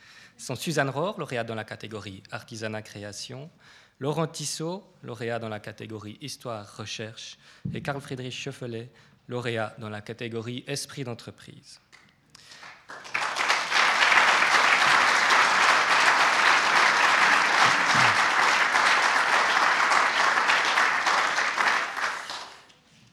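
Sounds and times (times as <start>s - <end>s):
speech: 0.4s - 11.8s
audience applause for award winners: 12.5s - 22.7s
laughter: 14.1s - 20.4s.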